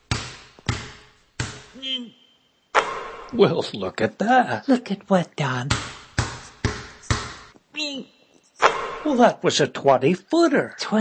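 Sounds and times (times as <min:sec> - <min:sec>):
basketball dribbled between a player's legs: 0:00.0 - 0:01.8, 0:02.8 - 0:03.4, 0:05.7 - 0:07.6, 0:08.6 - 0:09.3
speech: 0:01.8 - 0:02.2, 0:03.3 - 0:05.9, 0:09.0 - 0:10.9.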